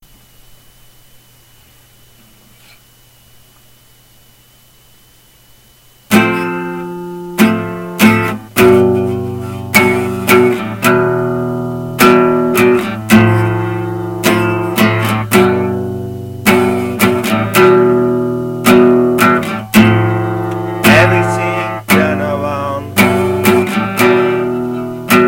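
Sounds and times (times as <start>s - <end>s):
acoustic session music: 6.1s - 25.2s.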